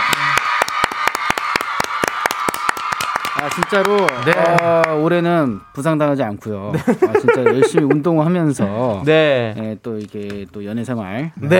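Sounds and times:
applause: 0.0s - 5.2s
cheering: 0.0s - 6.0s
speech: 3.4s - 11.5s
laughter: 6.7s - 8.2s.

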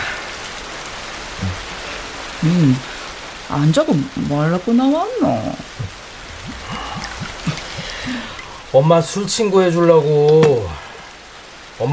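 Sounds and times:
rain falling: 0.0s - 11.9s
speech: 2.4s - 2.9s, 3.5s - 6.0s, 8.1s - 10.8s
laughter: 5.7s - 8.5s.

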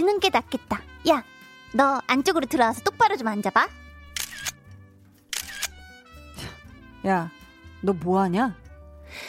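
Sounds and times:
speech: 0.0s - 3.8s, 7.0s - 9.2s
music: 0.0s - 9.2s
camera shutter clicks taking a photo: 4.1s - 4.7s, 5.3s - 5.8s.

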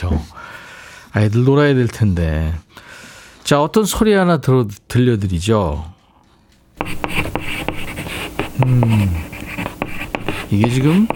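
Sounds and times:
speech: 0.0s - 0.4s, 1.1s - 6.0s, 8.6s - 9.2s, 10.5s - 11.1s
chalk writing on a blackboard: 6.8s - 11.1s.

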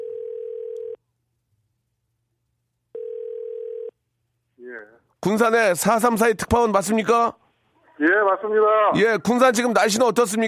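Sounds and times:
telephone dial tone while connecting call: 0.0s - 1.0s, 3.0s - 3.9s
speech: 4.8s - 7.4s, 8.0s - 10.4s.

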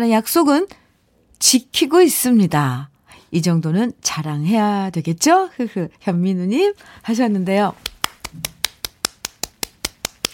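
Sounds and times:
speech: 0.0s - 0.8s, 1.4s - 8.5s
hand clapping: 7.8s - 10.3s.

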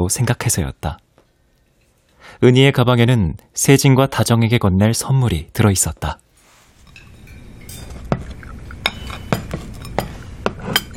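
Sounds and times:
speech: 0.0s - 1.0s, 2.3s - 6.2s
glasses and cutlery set down on a table: 6.8s - 10.9s.

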